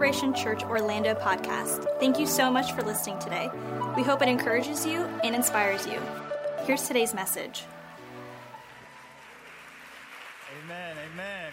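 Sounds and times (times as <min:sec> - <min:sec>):
speech: 0:00.0 - 0:07.8
audience clapping: 0:07.2 - 0:11.5.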